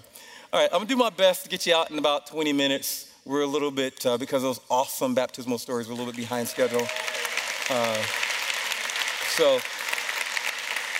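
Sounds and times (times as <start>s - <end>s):
speech: 0.5s - 7.1s, 7.7s - 8.3s, 9.4s - 9.7s
audience clapping: 5.9s - 10.9s.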